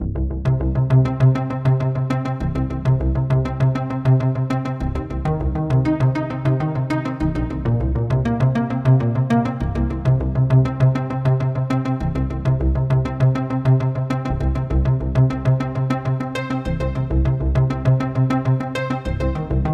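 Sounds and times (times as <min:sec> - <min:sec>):
Celtic synth music: 0:00.6 - 0:19.7.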